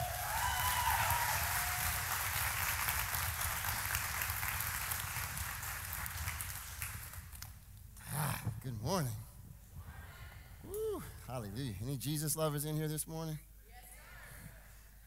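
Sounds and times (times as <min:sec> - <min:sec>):
congregation applauding to welcome a pastor: 0:00.0 - 0:07.5
speech: 0:08.7 - 0:09.2, 0:11.3 - 0:13.5.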